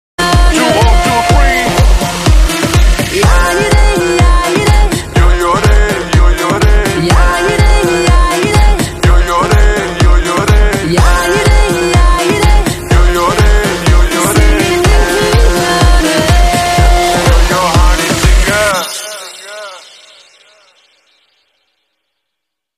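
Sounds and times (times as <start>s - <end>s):
background music ringtone: 0.2s - 21.1s.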